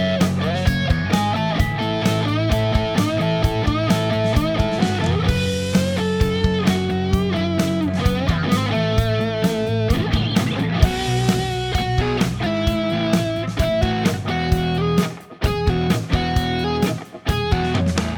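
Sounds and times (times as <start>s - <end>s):
unplugged electric guitar: 0.0s - 18.1s.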